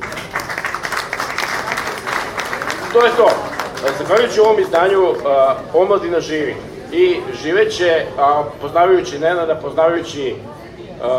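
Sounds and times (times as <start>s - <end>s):
audience applause at a public event: 0.0s - 5.5s
speech: 2.9s - 11.1s.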